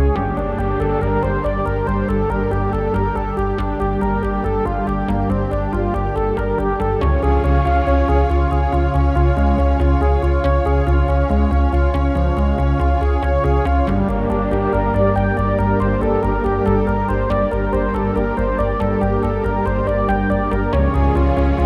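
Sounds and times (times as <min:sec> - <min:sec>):
space ambience: 0:00.2 - 0:21.6.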